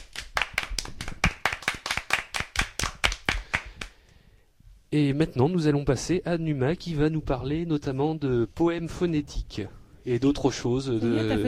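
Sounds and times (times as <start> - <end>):
applause: 0.0 - 4.0
speech: 4.9 - 11.4.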